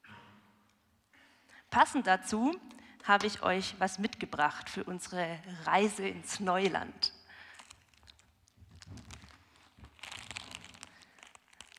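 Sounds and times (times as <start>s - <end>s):
speech: 1.7s - 7.1s
opened plastic bag of crisps crinkling: 7.4s - 11.7s.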